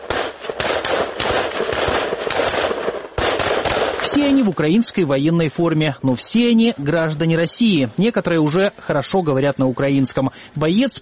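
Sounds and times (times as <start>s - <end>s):
automatic rifle fire during assault training: 0.0s - 4.5s
speech: 4.2s - 11.0s.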